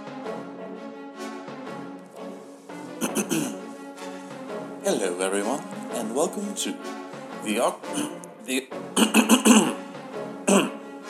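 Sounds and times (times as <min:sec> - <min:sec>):
exaggerated awkward throat clearing: 0:03.0 - 0:03.6, 0:07.9 - 0:08.2, 0:09.0 - 0:09.8, 0:10.5 - 0:10.8
speech: 0:03.2 - 0:03.6, 0:04.8 - 0:09.8, 0:10.5 - 0:10.7.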